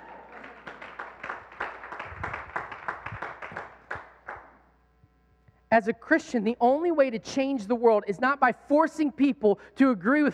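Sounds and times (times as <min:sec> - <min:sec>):
crowd clapping: 0:00.0 - 0:04.6
speech: 0:05.7 - 0:10.3.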